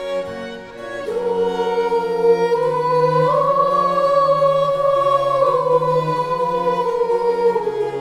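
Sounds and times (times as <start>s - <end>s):
choir singing: 0.1s - 7.9s.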